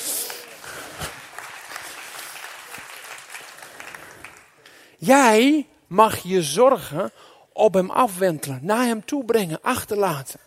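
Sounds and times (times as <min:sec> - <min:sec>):
audience applause: 0:00.0 - 0:04.6
speech: 0:05.0 - 0:10.4.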